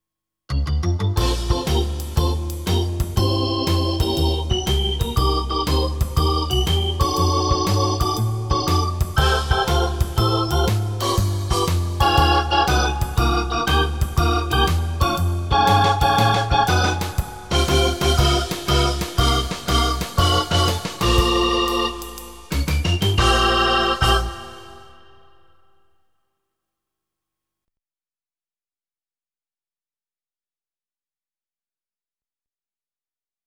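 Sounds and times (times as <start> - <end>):
Hammond B3 organ: 0.5 - 25.6.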